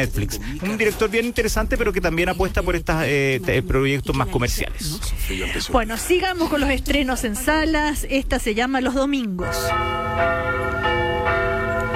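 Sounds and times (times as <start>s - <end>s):
speech: 0.0s - 11.0s
church bells ringing to call people to mass: 9.4s - 11.9s.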